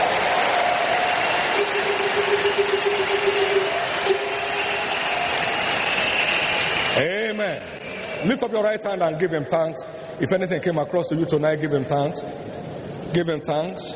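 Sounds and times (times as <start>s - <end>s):
church congregation applauding to praise the Lord: 0.0s - 8.6s
speech: 7.0s - 13.9s.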